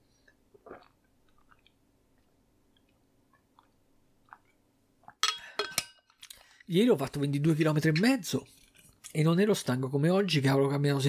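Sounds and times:
person sipping and swallowing: 0:00.1 - 0:05.2
glass set down with a sharp clink: 0:05.2 - 0:06.1
speech: 0:06.7 - 0:08.6, 0:09.2 - 0:11.0.

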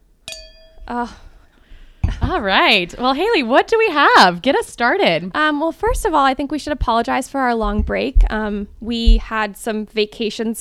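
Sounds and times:
glasses clinking in a toast: 0:00.2 - 0:01.0
speech: 0:00.9 - 0:01.3, 0:02.3 - 0:10.6.

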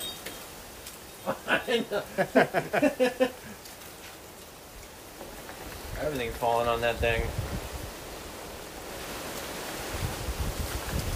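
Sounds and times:
laughter: 0:01.2 - 0:03.6
speech: 0:01.2 - 0:03.6, 0:06.0 - 0:07.4
wind rushing: 0:05.6 - 0:11.1.

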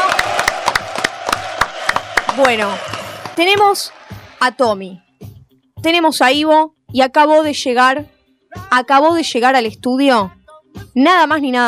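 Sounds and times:
small group applauding: 0:00.0 - 0:04.4
speech: 0:02.4 - 0:05.0, 0:05.8 - 0:08.1, 0:08.7 - 0:10.4, 0:11.0 - 0:11.6.

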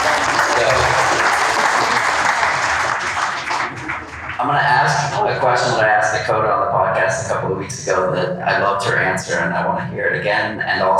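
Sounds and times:
audience applause: 0:00.0 - 0:06.2
laughter: 0:00.0 - 0:10.6
speech: 0:05.4 - 0:10.9.

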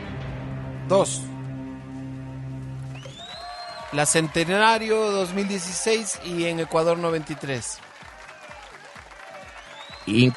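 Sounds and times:
speech: 0:00.9 - 0:01.3, 0:03.9 - 0:07.9, 0:10.1 - 0:10.3
crowd applause: 0:02.8 - 0:10.3.

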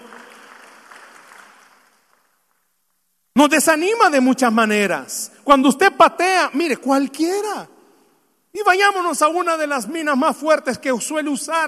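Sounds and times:
crowd clapping: 0:00.0 - 0:02.7
speech: 0:03.4 - 0:07.7, 0:08.5 - 0:11.6.

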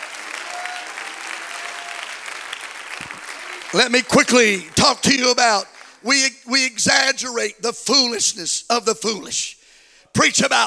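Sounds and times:
crowd clapping: 0:00.0 - 0:06.3
speech: 0:03.7 - 0:10.6.

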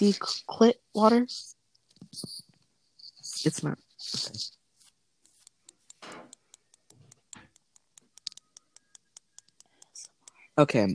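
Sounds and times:
speech: 0:00.0 - 0:01.6, 0:03.4 - 0:04.6, 0:10.6 - 0:10.9
earbuds clicking: 0:05.4 - 0:10.4.

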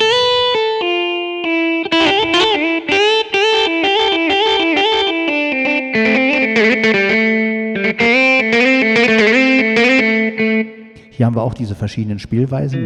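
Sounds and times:
distorted electric guitar riff of chords and single notes: 0:00.0 - 0:11.2
speech: 0:11.2 - 0:12.8.

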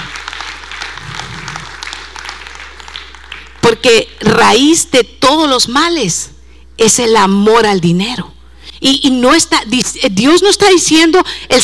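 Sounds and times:
audience applause: 0:00.0 - 0:03.6
speech: 0:03.7 - 0:11.6.

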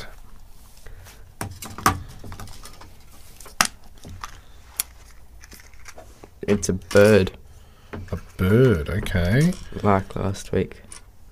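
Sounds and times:
Kinder Surprise egg wrapper being opened: 0:03.4 - 0:06.0
speech: 0:06.5 - 0:07.4, 0:08.4 - 0:10.8.

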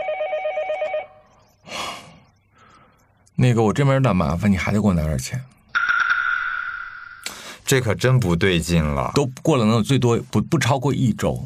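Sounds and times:
telephone ringing with trilling electronic tone: 0:00.0 - 0:01.3, 0:05.8 - 0:07.2
breathy noise burst: 0:01.5 - 0:03.1, 0:07.2 - 0:07.7
speech: 0:03.4 - 0:05.6, 0:07.7 - 0:11.4.

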